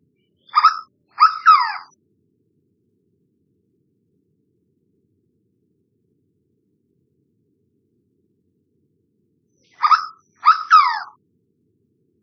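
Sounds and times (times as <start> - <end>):
harsh bird calls: 0.4 - 1.9, 9.6 - 11.1.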